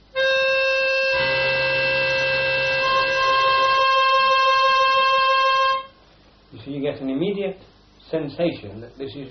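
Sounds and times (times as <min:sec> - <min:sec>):
two notes forming a seventh interval: 0:00.0 - 0:06.0
speech: 0:07.1 - 0:09.2.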